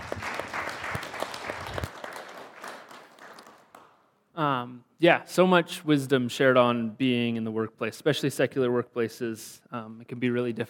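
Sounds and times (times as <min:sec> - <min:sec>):
crowd applauding: 0:00.0 - 0:04.0
speech: 0:04.4 - 0:10.6.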